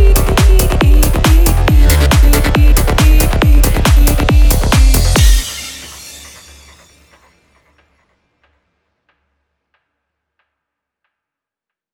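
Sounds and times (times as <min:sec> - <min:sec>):
goa trance mantra music: 0:00.0 - 0:09.4.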